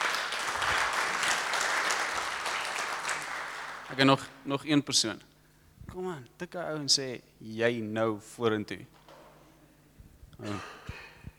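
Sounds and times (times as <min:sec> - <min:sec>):
audience clapping hands: 0:00.0 - 0:04.3
speech: 0:03.9 - 0:05.3, 0:05.9 - 0:09.0, 0:10.4 - 0:10.8.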